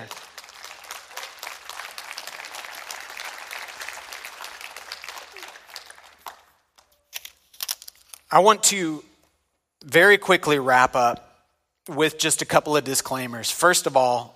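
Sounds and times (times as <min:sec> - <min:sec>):
audience clapping hands: 0:00.0 - 0:07.0
speech: 0:08.3 - 0:09.1, 0:09.8 - 0:11.2, 0:11.9 - 0:14.3.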